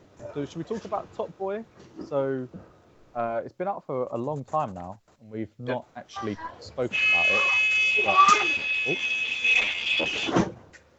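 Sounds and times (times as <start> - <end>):
speech: 0.4 - 9.2
voice imitating a bus door closing buzzer: 7.0 - 10.3.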